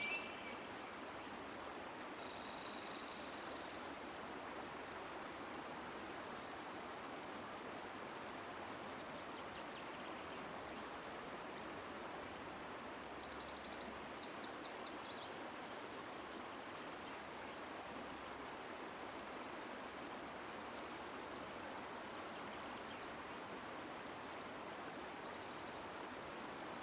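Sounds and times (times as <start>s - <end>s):
forest river flowing: 0.0s - 26.8s.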